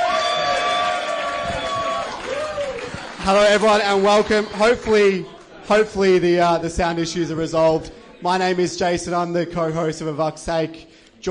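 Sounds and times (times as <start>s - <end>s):
crowd applauding and cheering: 0.0s - 5.6s
speech: 3.2s - 11.2s.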